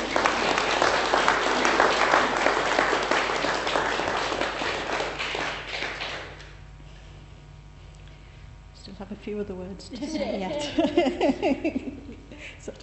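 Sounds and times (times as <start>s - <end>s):
audience applause: 0.0s - 6.5s
speech: 9.3s - 12.0s, 12.6s - 12.8s
laughter: 10.0s - 12.5s.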